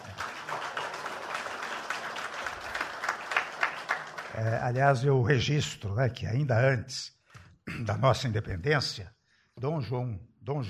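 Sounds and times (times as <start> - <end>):
audience applause: 0.0 - 5.0
speech: 4.4 - 10.6.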